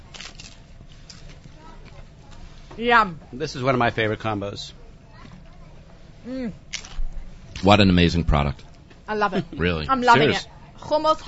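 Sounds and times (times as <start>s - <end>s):
biting and chewing a corn chip: 0.0s - 1.2s
speech: 2.8s - 4.8s, 6.2s - 6.6s, 7.6s - 11.2s.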